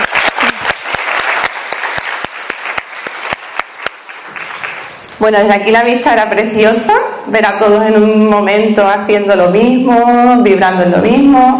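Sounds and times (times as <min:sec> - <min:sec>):
group applause: 0:00.0 - 0:05.2
speech: 0:05.2 - 0:11.5.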